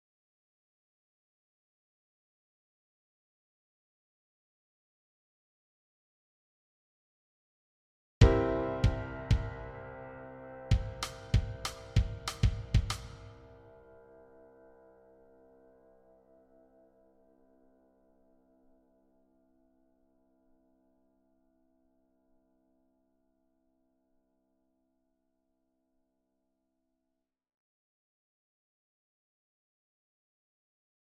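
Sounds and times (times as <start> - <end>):
drum kit: 8.2 - 10.0, 10.7 - 13.4.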